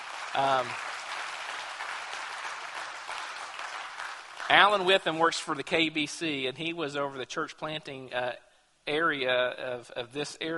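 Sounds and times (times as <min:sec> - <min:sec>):
audience applause: 0:00.0 - 0:05.0
speech: 0:00.4 - 0:00.9, 0:04.5 - 0:10.5.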